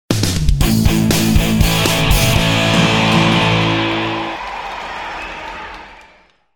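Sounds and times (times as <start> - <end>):
rock logo sting: 0.6 - 4.3.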